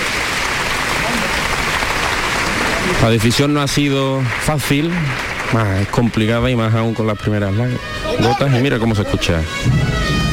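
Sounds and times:
crowd clapping: 0.0s - 9.0s
murmur of voices: 2.4s - 9.6s
speech: 3.0s - 10.2s.

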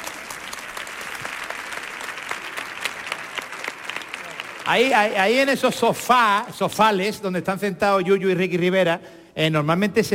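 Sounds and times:
audience applause: 0.0s - 6.4s
speech: 4.7s - 10.1s.

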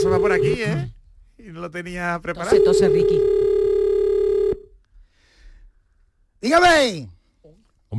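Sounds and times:
telephone ringing for a call to a radio show: 0.0s - 0.8s, 2.4s - 4.7s
speech: 0.1s - 3.4s, 6.4s - 7.9s.

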